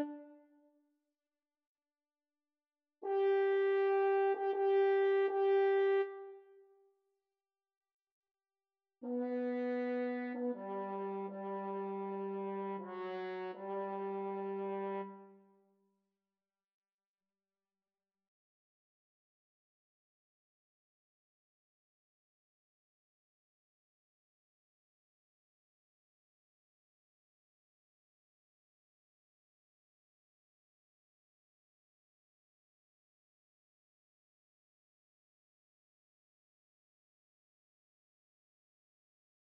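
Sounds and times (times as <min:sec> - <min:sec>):
brass quintet playing an overture: 0:03.0 - 0:06.3, 0:09.1 - 0:15.2.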